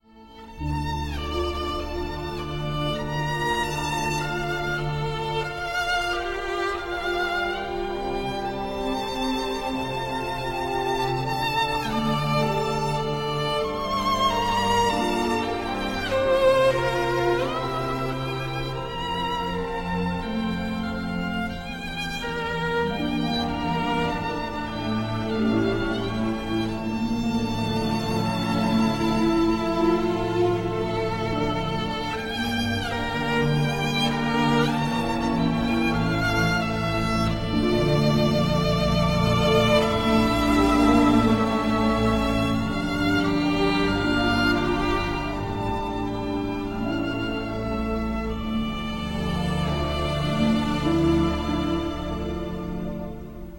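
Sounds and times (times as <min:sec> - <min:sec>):
violin: 0:00.0 - 0:53.5.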